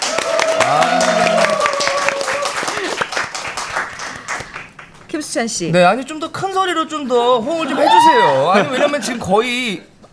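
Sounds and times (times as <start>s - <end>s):
audience applause: 0.0s - 5.1s
speech: 5.4s - 10.1s.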